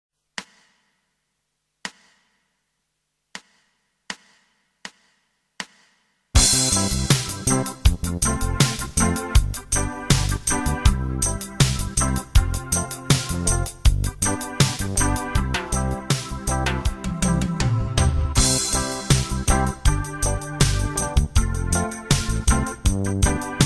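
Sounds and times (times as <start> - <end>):
reggae guitar backing: 6.4 - 23.6.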